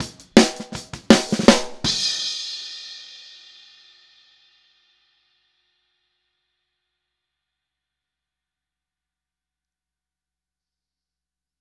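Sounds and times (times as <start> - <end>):
snare drum outro: 0.0 - 2.5.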